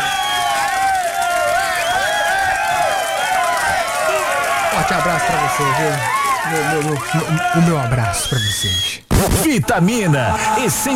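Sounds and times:
crowd cheering and applauding: 0.0s - 8.4s
voices whooping and calling out: 0.0s - 9.0s
speech: 5.0s - 10.9s.

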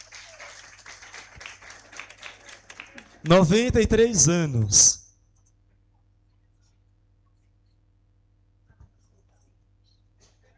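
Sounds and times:
audience applause: 0.0s - 3.7s
speech: 3.2s - 5.0s.

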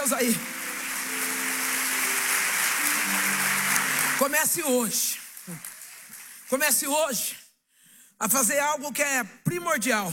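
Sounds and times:
audience applauding: 0.0s - 6.9s
speech: 0.1s - 0.6s, 4.2s - 5.7s, 6.5s - 7.4s, 8.2s - 10.1s.

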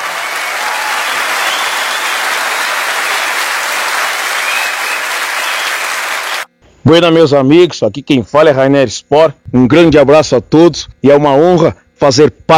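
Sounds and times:
audience applause: 0.0s - 6.5s
speech: 6.8s - 12.5s.

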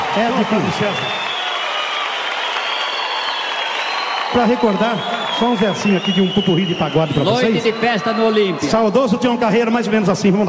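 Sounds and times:
audience applause for a sertanejo singing duo at a music show: 0.0s - 9.6s
crowd cheering: 0.0s - 10.4s
speech: 0.2s - 1.3s, 4.3s - 10.4s.

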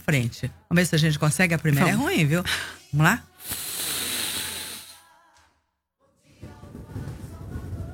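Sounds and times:
speech: 0.1s - 3.6s
deep breathing in through nose, out mouth: 2.5s - 5.0s.

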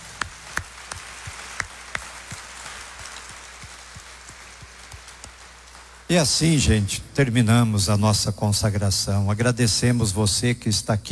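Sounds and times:
sparse hand claps: 0.0s - 6.4s
speech: 6.1s - 11.0s.

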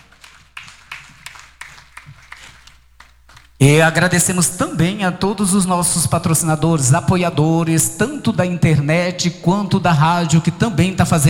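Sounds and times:
round of applause: 0.0s - 3.9s
speech: 3.6s - 11.2s.

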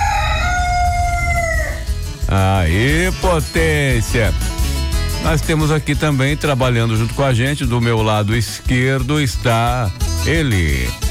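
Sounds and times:
rooster crowing: 0.0s - 2.0s
speech: 2.3s - 4.5s, 5.2s - 11.0s.

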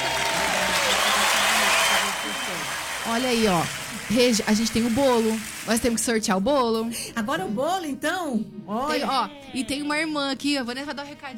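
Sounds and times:
round of applause during a radio show giveaway: 0.0s - 6.0s
speech: 3.2s - 11.3s.

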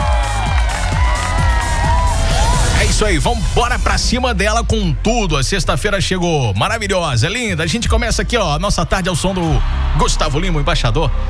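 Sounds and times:
applause and cheering: 0.0s - 4.0s, 8.9s - 11.2s
speech: 3.0s - 11.2s.

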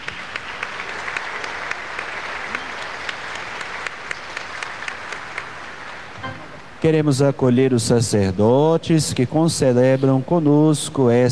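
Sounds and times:
applause: 0.0s - 7.0s
speech: 6.8s - 11.3s.

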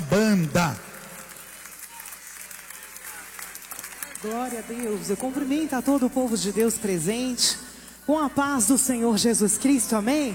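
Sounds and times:
audience applause: 0.0s - 7.3s
speech: 0.4s - 0.9s, 4.2s - 10.3s.

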